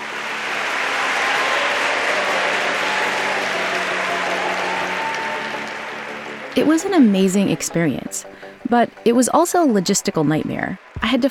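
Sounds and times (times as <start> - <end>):
loud applause in a concert hall: 0.0 - 8.5, 9.8 - 11.2
speech: 6.6 - 11.2.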